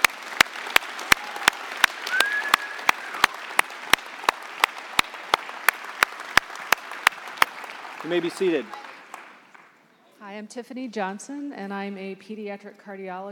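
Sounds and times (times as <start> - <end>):
audience clapping: 0.0 - 10.0
brief high whistle: 2.1 - 3.3
speech: 8.0 - 8.8, 10.3 - 13.3.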